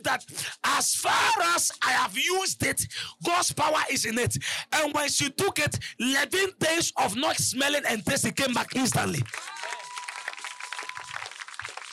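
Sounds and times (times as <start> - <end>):
speech: 0.1 - 9.6
congregation clapping during a church service: 8.4 - 11.9.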